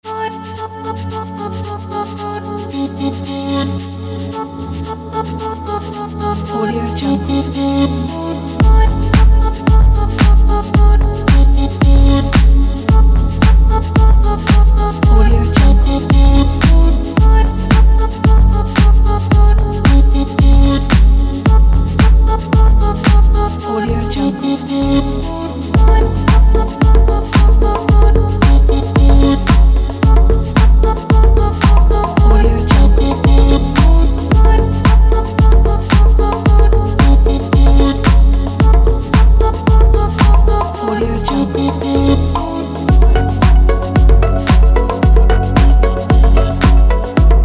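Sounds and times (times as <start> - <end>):
dark chill lounge house music: 0.0 - 47.4.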